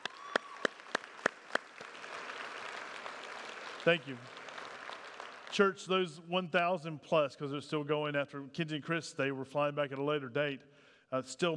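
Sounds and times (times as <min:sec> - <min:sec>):
audience applause: 0:00.0 - 0:05.7
speech: 0:03.8 - 0:04.4, 0:05.6 - 0:11.5.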